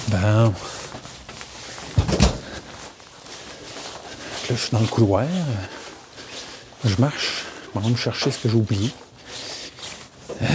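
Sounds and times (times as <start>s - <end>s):
speech: 0.1s - 0.8s, 4.5s - 5.8s, 6.8s - 9.1s
office door opening: 1.9s - 2.6s.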